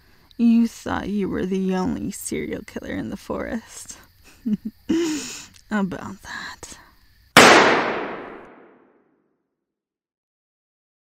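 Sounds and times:
speech: 0:00.4 - 0:06.8
warning gunshot fired in a forest: 0:07.4 - 0:08.8.

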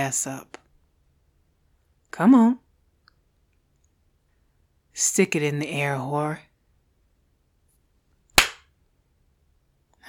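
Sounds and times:
speech: 0:00.0 - 0:00.6, 0:02.1 - 0:02.6, 0:05.0 - 0:06.5
hand slap on bare buttocks: 0:08.4 - 0:08.6.

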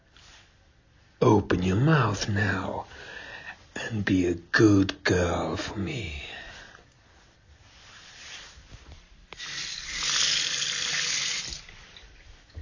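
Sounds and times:
speech: 0:01.2 - 0:03.2, 0:03.8 - 0:06.3
water pouring into a glass: 0:09.4 - 0:12.0.

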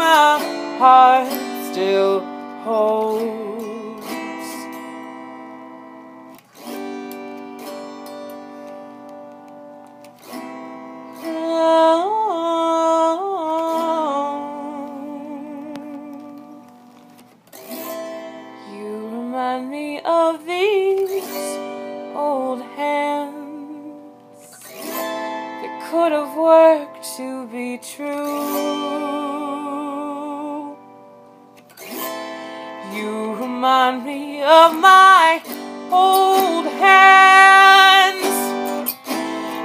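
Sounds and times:
person singing a lamenting folk song: 0:00.0 - 0:05.3, 0:11.1 - 0:16.7, 0:18.6 - 0:30.8, 0:32.7 - 0:39.6
autoharp: 0:00.0 - 0:39.6.

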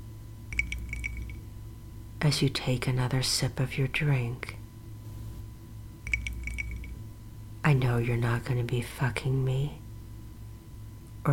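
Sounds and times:
low steady hum: 0:00.0 - 0:11.3
speech: 0:02.2 - 0:04.6, 0:07.7 - 0:09.8
ice cubes clinking against a drinking glass: 0:06.1 - 0:06.9.

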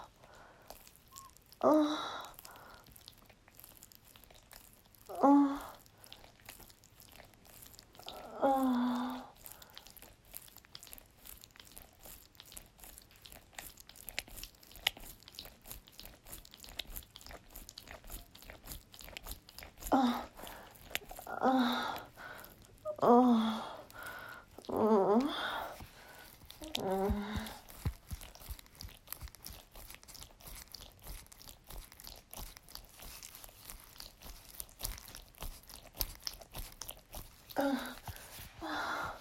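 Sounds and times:
wet noises: 0:00.0 - 0:39.1
person whimpering: 0:01.6 - 0:02.3, 0:05.1 - 0:05.8, 0:08.2 - 0:09.3, 0:19.9 - 0:20.4, 0:21.0 - 0:23.9, 0:24.6 - 0:25.8, 0:26.6 - 0:27.7, 0:37.6 - 0:39.1.

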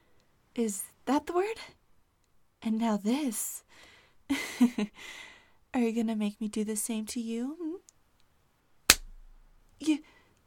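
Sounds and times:
speech: 0:00.6 - 0:01.8, 0:02.6 - 0:07.6, 0:09.8 - 0:10.1
slap to the face: 0:08.9 - 0:09.2.

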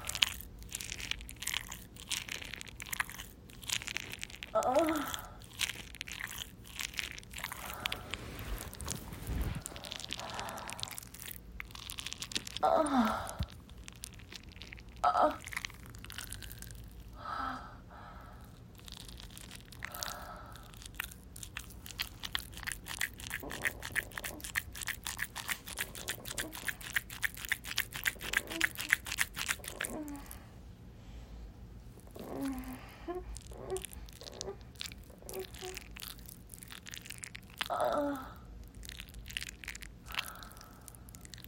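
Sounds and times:
wet sounds: 0:00.0 - 0:17.0, 0:18.7 - 0:30.4, 0:32.0 - 0:41.4
person moaning: 0:04.6 - 0:05.4, 0:12.6 - 0:13.5, 0:32.1 - 0:34.6, 0:37.7 - 0:38.4
person whimpering: 0:04.6 - 0:05.4, 0:12.6 - 0:13.5, 0:28.2 - 0:29.0, 0:29.6 - 0:30.4, 0:32.1 - 0:35.8, 0:37.7 - 0:38.4.

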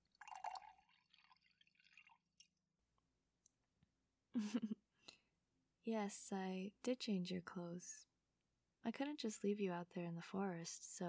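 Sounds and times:
tea being poured: 0:00.0 - 0:02.2
speech: 0:04.4 - 0:04.8, 0:05.9 - 0:08.1, 0:08.8 - 0:11.0.

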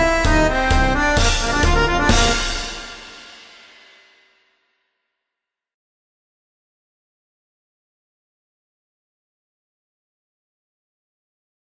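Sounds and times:
bagpipe playing a polka: 0:00.0 - 0:03.3.

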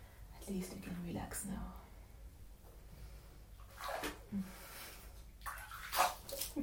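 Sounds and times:
speech: 0:00.5 - 0:01.8, 0:04.3 - 0:04.7
water splashing in a bathtub: 0:03.7 - 0:04.3, 0:05.4 - 0:06.6.

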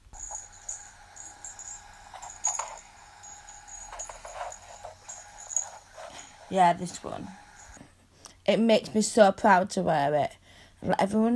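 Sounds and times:
small bell on a collar jingling: 0:00.0 - 0:07.8
speech: 0:06.5 - 0:07.4, 0:08.5 - 0:11.3.

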